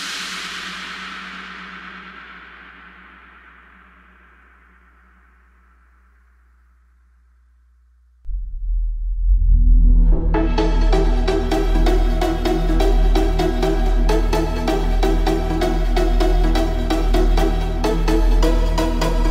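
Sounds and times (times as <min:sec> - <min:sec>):
boosted bass: 0:08.3 - 0:19.2.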